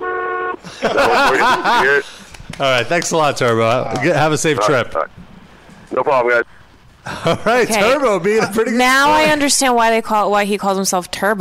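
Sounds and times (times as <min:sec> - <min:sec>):
vehicle horn honking: 0:00.0 - 0:00.6
laughter: 0:00.6 - 0:04.6, 0:07.0 - 0:09.7
speech: 0:00.6 - 0:05.2, 0:05.9 - 0:11.3.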